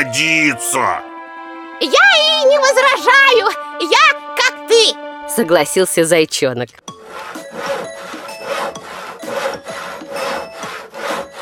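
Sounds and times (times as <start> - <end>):
speech: 0.0 - 1.1, 1.8 - 7.7
sawing wood while repairing a bridge: 6.9 - 11.4.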